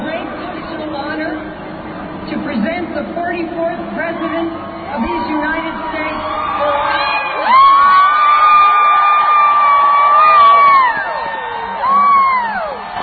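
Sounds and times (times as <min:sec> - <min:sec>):
speech: 0:02.5 - 0:06.7
crowd chanting and cheering: 0:04.8 - 0:13.0.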